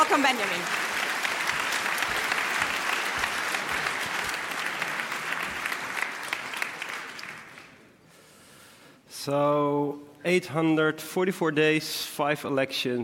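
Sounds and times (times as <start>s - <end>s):
audience applause: 0.0s - 7.9s
speech: 0.1s - 0.9s, 9.2s - 13.0s.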